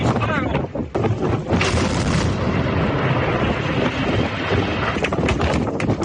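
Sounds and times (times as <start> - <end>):
roaring rumble of a power-plant chimney collapsing: 0.0 - 6.0
wind buffeting: 0.0 - 6.0
explosive blast cracks in a power-plant chimney demolition: 1.5 - 5.2.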